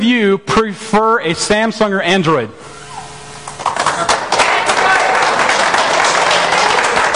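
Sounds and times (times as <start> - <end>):
speech: 0.0 - 2.8
audience clapping: 3.4 - 7.1.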